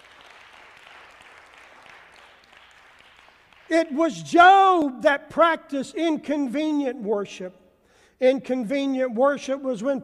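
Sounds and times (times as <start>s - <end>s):
audience hand clapping: 0.0s - 4.0s
speech: 3.7s - 7.6s, 8.2s - 10.0s.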